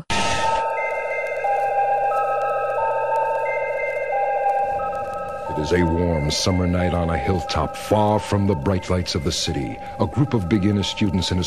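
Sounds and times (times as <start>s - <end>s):
chime signaling time to listen: 0.3s - 11.4s
speech: 5.6s - 11.4s.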